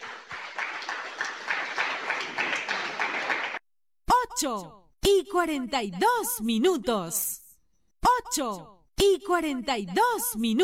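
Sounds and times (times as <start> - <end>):
audience applauding: 0.0 - 3.6
speech: 4.4 - 7.4, 8.3 - 10.6.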